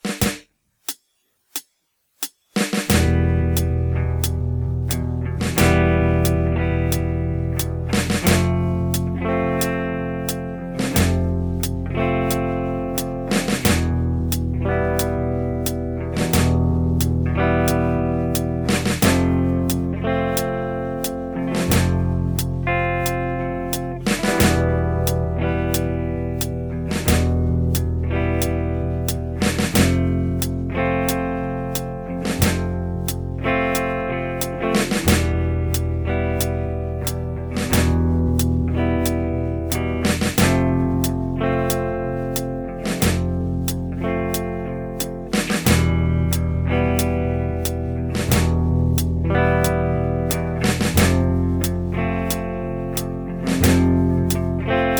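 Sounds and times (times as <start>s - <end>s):
flamenco backing track at 90 bpm: 1.6s - 54.9s.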